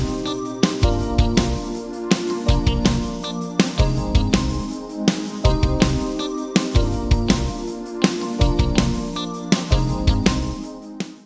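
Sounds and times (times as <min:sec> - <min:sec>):
drums with Roland SRV 2000 non-linear reverb: 0:00.0 - 0:11.2.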